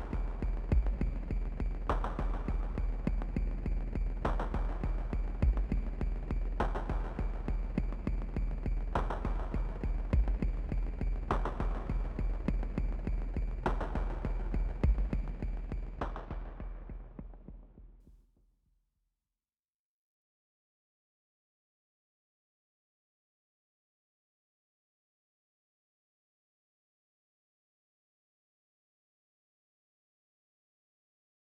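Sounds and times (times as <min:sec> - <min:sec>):
percussion: 0:00.0 - 0:18.1.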